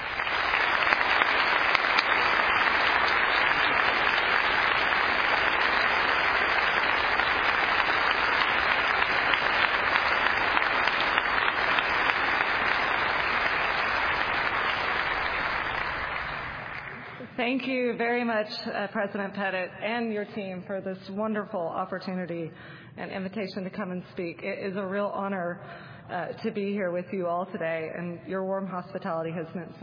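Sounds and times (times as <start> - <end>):
audience applauding to welcome an ambassador at a homecoming kickoff event: 0.0 - 17.2
speech: 17.5 - 29.8.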